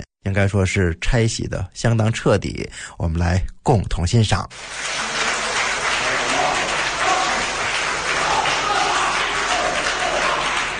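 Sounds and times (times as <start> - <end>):
speech: 0.3 - 5.3
audience applause: 4.6 - 10.7.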